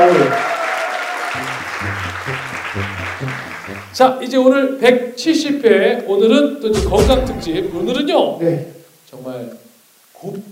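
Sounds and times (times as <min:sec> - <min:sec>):
studio applause: 0:00.0 - 0:04.1
speech: 0:04.0 - 0:09.6, 0:10.2 - 0:10.5.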